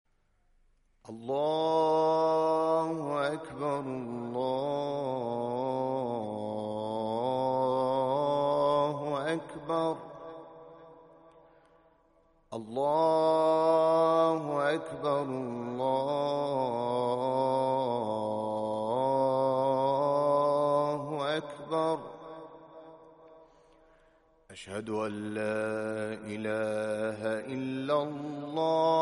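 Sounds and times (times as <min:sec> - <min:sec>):
Azan call to prayer: 0:01.1 - 0:11.8, 0:12.5 - 0:28.9.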